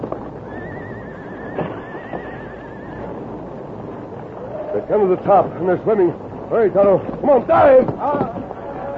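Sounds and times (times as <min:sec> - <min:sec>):
horse neighing while leaping a gorge in a radio drama: 0:00.5 - 0:03.4
speech: 0:04.8 - 0:08.4.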